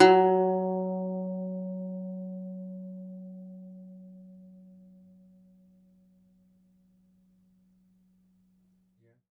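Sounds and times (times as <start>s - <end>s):
second domra plucked strings: 0.0s - 5.4s.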